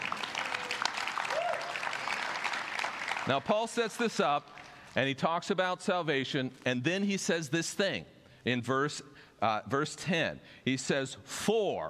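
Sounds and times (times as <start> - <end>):
audience clapping: 0.0 - 5.0
speech: 3.2 - 11.8.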